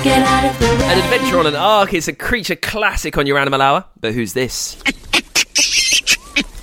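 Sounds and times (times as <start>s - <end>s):
speech: 0.0s - 5.8s
large red-bottomed monkey shaky screech: 4.8s - 6.5s.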